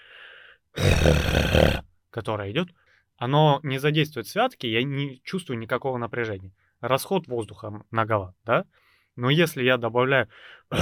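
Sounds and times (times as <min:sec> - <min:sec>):
singer's harsh vocal growl: 0:00.8 - 0:01.8
speech: 0:01.0 - 0:01.5, 0:02.2 - 0:10.7.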